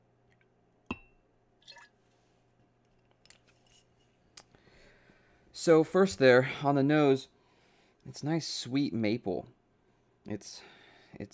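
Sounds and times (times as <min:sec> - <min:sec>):
glassy clink: 0:00.9 - 0:01.9
soft drips: 0:01.6 - 0:02.0
whiskey pouring into a glass: 0:01.6 - 0:02.0
speech: 0:05.6 - 0:07.4, 0:08.1 - 0:09.6, 0:10.3 - 0:11.3.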